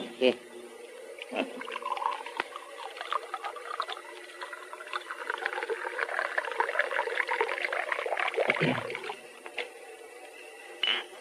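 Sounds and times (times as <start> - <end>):
drink being poured into a glass: 1.5 - 9.2.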